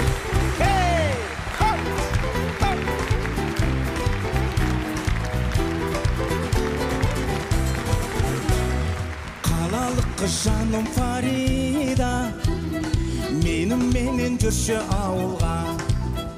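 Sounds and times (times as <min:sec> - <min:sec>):
audience clapping in rhythm in support: 0:00.0 - 0:16.3
loud music: 0:00.0 - 0:16.3
person singing: 0:00.6 - 0:02.0, 0:09.4 - 0:16.3
speech: 0:14.4 - 0:15.8.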